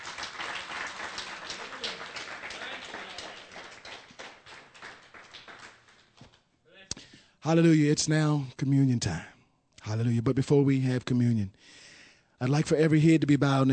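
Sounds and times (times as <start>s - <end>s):
audience clapping: 0.0s - 6.5s
speech: 7.4s - 9.3s, 9.9s - 11.8s, 12.4s - 13.7s.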